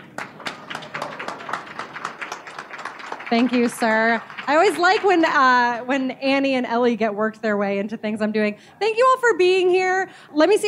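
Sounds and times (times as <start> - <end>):
audience applause: 0.0 - 5.8
speech: 3.3 - 10.6.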